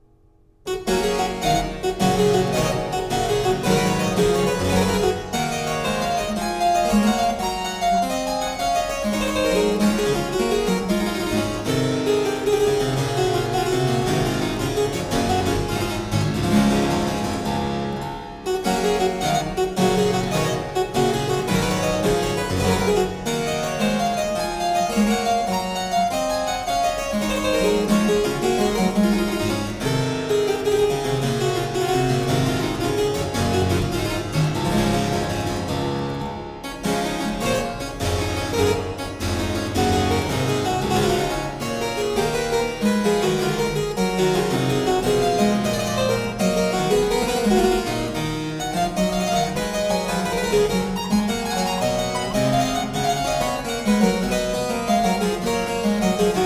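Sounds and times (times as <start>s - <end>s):
harpsichord suite in G minor: 0.0s - 56.4s.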